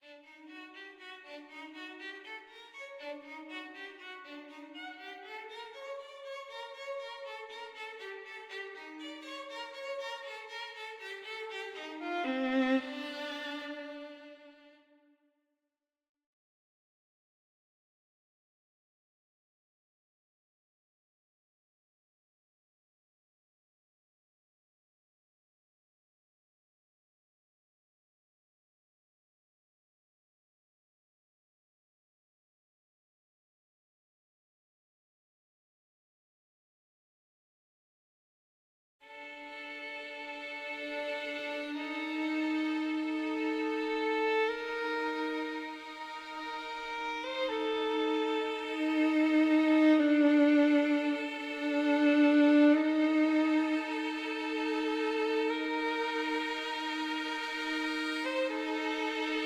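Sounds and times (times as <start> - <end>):
violin: 0.0 - 15.1, 39.0 - 59.4.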